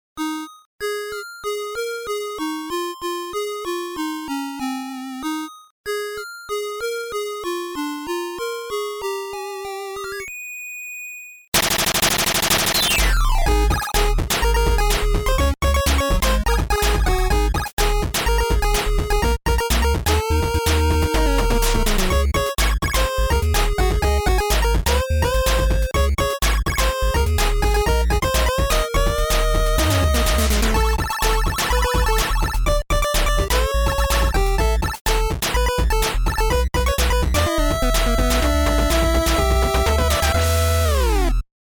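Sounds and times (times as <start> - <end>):
8-bit chiptune music: 0.2 - 10.4, 11.6 - 41.4.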